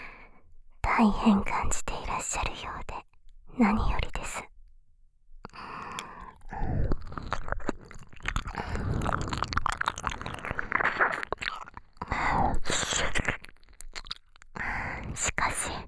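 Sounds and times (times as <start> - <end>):
speech: 1.0 - 2.8, 3.6 - 4.1
wet ear licking and smacking mouth sounds: 5.5 - 15.8.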